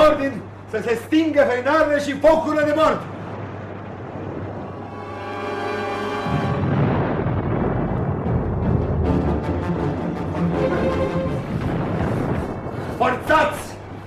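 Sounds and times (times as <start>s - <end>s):
sharp crackling bursts: 0.0s - 14.0s
speech: 0.2s - 3.2s
cannon salvos: 2.2s - 14.0s
steady low rumble: 3.0s - 14.0s
brief sustained tone: 4.1s - 7.2s.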